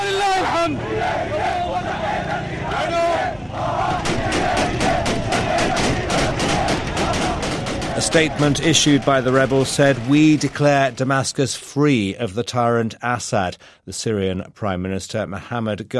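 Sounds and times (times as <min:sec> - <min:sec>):
crowd cheering and shouting in the street: 0:00.0 - 0:11.0
gunfire: 0:03.8 - 0:11.3
speech: 0:08.0 - 0:15.9.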